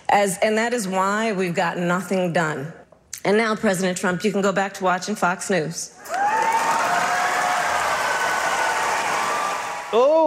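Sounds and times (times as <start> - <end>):
speech: 0.1 - 6.1, 9.9 - 10.2
crowd applauding: 6.0 - 10.2.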